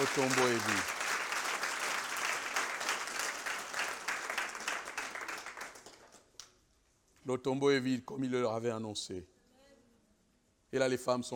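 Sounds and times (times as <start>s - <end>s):
speech: 0.0s - 1.0s, 7.2s - 9.3s, 10.7s - 11.3s
church congregation applauding during a sermon: 0.0s - 6.4s.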